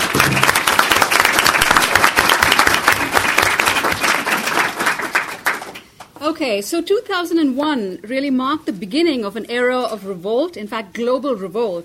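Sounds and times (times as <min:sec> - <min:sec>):
audience applause: 0:00.0 - 0:05.8
speech: 0:06.4 - 0:11.8.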